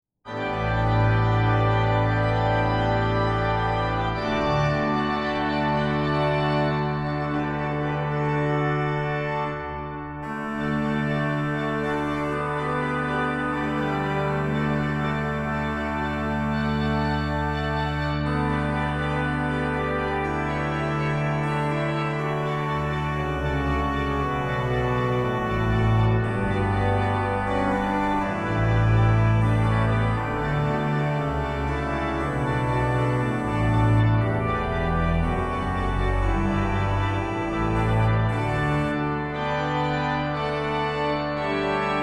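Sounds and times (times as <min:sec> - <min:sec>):
organist playing a piece in D major: 0:00.3 - 0:42.0.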